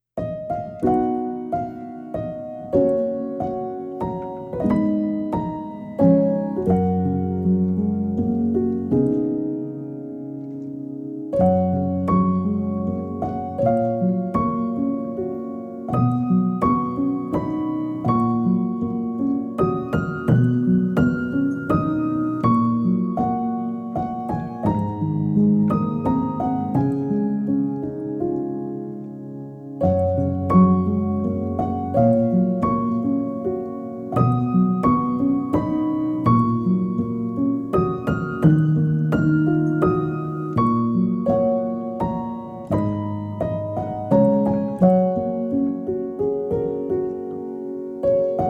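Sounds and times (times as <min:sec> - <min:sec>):
piano music: 0:00.0 - 0:48.4.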